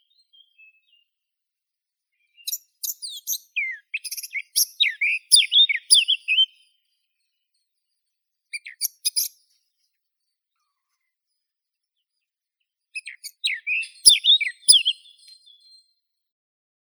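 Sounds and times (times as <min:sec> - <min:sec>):
Sylvia atricapilla blackcap singing: 0:02.2 - 0:06.7, 0:08.5 - 0:09.5, 0:13.0 - 0:15.8.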